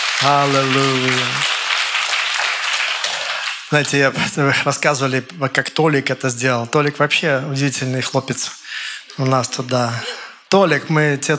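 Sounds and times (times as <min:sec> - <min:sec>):
audience applauding: 0:00.0 - 0:04.3
speech: 0:00.2 - 0:01.5, 0:03.7 - 0:08.6, 0:09.2 - 0:11.3.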